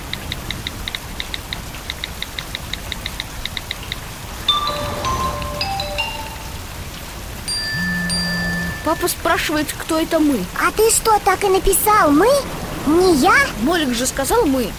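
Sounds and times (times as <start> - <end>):
rain heard from a bus shelter: 0.0 - 14.7
bright tonal chirps: 4.4 - 6.8, 7.5 - 9.2
low hum: 4.5 - 9.4, 11.4 - 14.7
high electronic beeps: 7.7 - 9.0
speech: 8.9 - 14.7.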